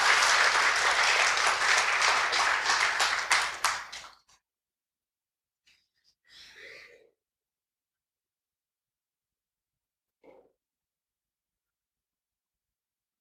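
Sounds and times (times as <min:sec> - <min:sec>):
audience applause: 0:00.0 - 0:04.2.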